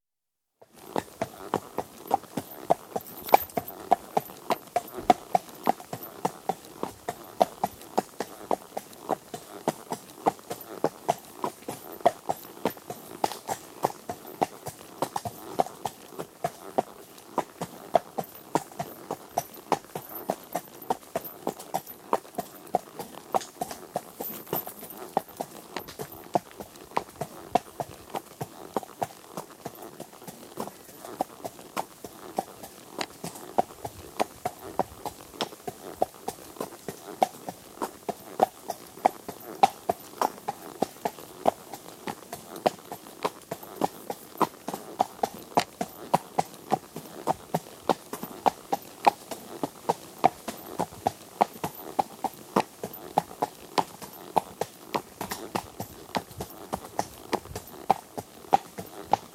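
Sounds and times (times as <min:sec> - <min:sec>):
one horse at walk on tarmac from rider's perspective: 0:00.6 - 0:59.3
saddle creaking: 0:00.7 - 0:59.3
horse stopping and fidgeting: 0:02.5 - 0:04.9.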